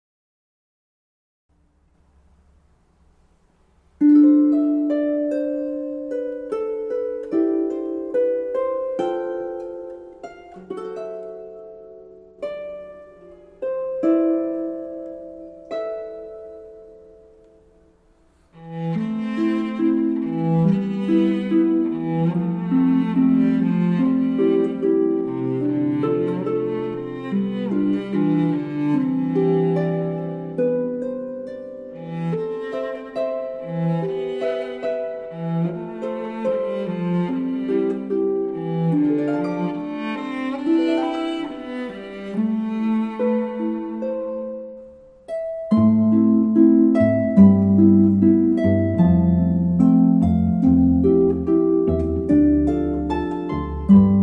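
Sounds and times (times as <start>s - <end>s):
harp: 1.6s - 54.2s
cello: 3.9s - 54.2s.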